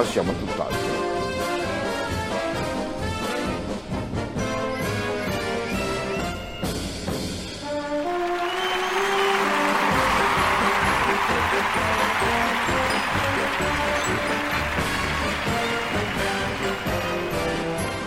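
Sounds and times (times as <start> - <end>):
football team fight song played by a brassy band: 0.0 - 18.0
applause: 7.7 - 18.0.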